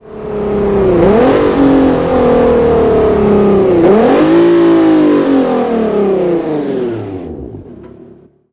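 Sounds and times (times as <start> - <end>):
vehicles throttling off: 0.0 - 7.9.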